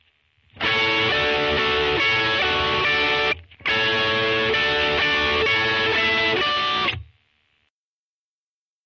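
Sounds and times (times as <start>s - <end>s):
rock guitar: 0.6s - 7.1s.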